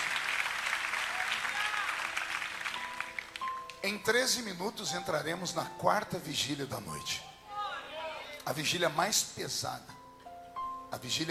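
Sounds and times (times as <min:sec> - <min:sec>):
audience applauding: 0:00.0 - 0:03.8
speech: 0:03.8 - 0:07.3, 0:08.5 - 0:10.0, 0:10.9 - 0:11.2.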